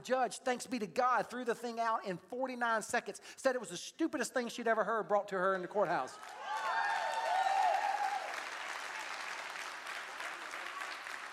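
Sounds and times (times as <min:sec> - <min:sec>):
speech: 0:00.0 - 0:06.5
high whistle or cheer: 0:06.2 - 0:08.4
audience applause: 0:06.2 - 0:11.3.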